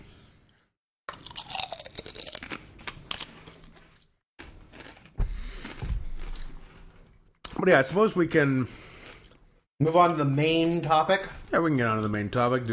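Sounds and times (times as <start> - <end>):
hard food crunched and chewed: 1.1 - 7.2
speech: 7.6 - 8.9, 9.8 - 12.7.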